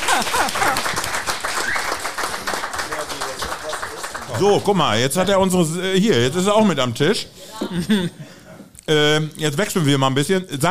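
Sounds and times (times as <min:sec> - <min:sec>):
laughter: 0:00.0 - 0:01.1, 0:07.5 - 0:08.6
audience applause: 0:00.0 - 0:04.7
speech: 0:04.4 - 0:08.2, 0:08.9 - 0:10.6.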